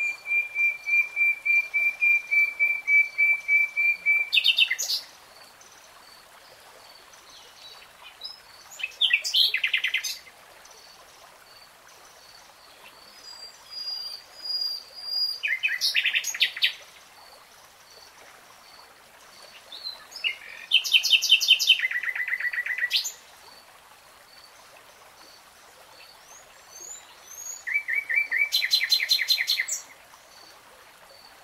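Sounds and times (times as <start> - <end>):
nightingale song: 0.0 - 5.1, 7.3 - 10.3, 12.6 - 16.9, 19.4 - 23.2, 26.0 - 30.5.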